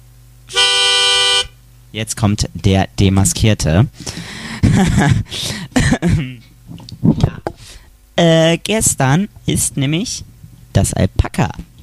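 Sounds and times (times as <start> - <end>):
spoiler alarm tone from an odd tuning device: 0.5 - 1.6
speech: 2.0 - 6.3, 7.0 - 7.5, 8.2 - 11.8
laughter: 4.6 - 6.4.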